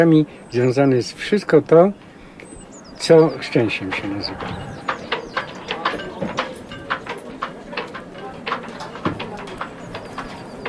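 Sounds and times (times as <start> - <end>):
speech: 0.0 - 2.1, 3.0 - 4.8
wind rushing: 3.3 - 5.7
yacht rigging knocking against the mast in the wind: 3.8 - 10.6.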